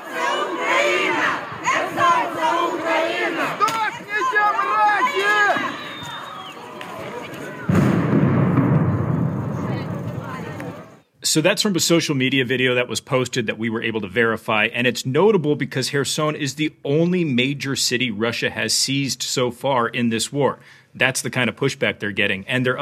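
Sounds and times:
crowd shouting and chanting at a civilian protest in Kherson: 0.0s - 8.2s, 8.9s - 11.0s
gunshots fired into the air: 7.1s - 10.9s
speech: 11.3s - 22.8s.

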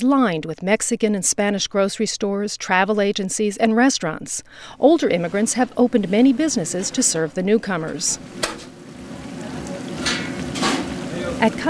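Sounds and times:
speech: 0.0s - 8.7s, 11.4s - 11.6s
tortilla pieces deep-frying into chips at Costa Chica Mexican restaurant: 5.1s - 11.6s.

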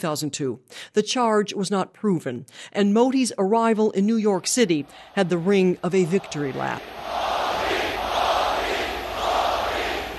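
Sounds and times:
speech: 0.0s - 7.0s
large crowd chanting a politician's name: 4.7s - 10.1s.

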